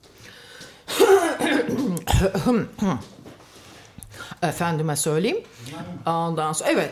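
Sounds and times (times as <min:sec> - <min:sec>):
throat clearing: 0:00.9 - 0:02.5
person coughing from a tickle in the throat: 0:00.9 - 0:02.7
speech: 0:02.2 - 0:03.2, 0:04.4 - 0:06.9.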